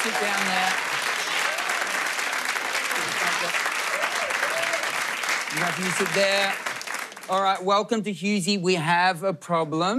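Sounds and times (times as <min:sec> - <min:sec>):
speech: 0:00.0 - 0:00.8, 0:05.5 - 0:06.7, 0:07.3 - 0:09.9
voices cheering: 0:00.0 - 0:06.8
audience applause welcoming a family onto a stage: 0:00.0 - 0:07.6.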